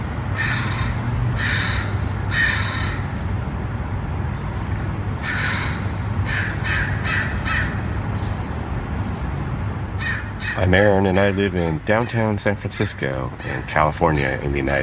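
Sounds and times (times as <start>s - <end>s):
low hum of city noise in San Francisco: 0.0s - 14.8s
crows cawing: 0.4s - 3.2s, 4.5s - 8.0s, 10.0s - 14.8s
speech: 10.7s - 14.8s.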